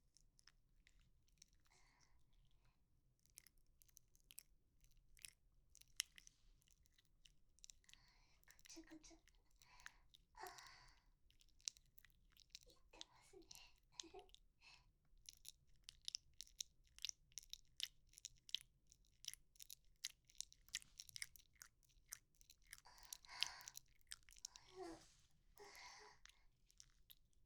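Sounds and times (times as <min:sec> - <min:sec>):
binaural wet mouth sounds by the ear: 0:03.2 - 0:27.4.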